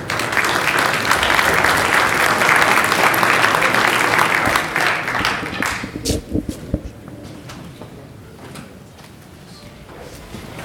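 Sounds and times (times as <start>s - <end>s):
audience applauding: 0.0s - 6.7s.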